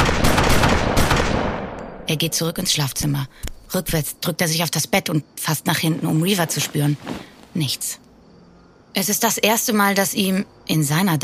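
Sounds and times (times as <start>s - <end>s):
pistol shots: 0.0s - 1.8s
speech: 2.1s - 8.0s, 9.0s - 11.2s.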